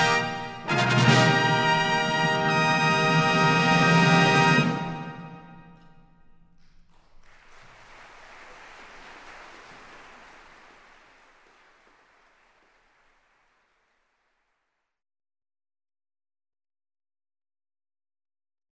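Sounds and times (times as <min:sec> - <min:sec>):
heroic fanfare: 0:00.0 - 0:05.6.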